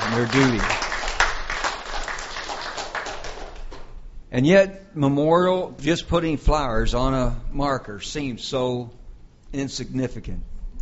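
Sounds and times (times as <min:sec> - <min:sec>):
audience hand clapping: 0:00.0 - 0:03.9
speech: 0:00.2 - 0:00.8, 0:04.3 - 0:10.5.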